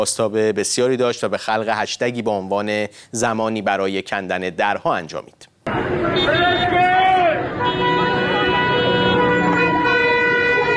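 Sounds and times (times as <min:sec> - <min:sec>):
speech: 0:00.0 - 0:06.7
busy street noise: 0:05.4 - 0:10.7
car horns honking in protest: 0:05.7 - 0:10.7.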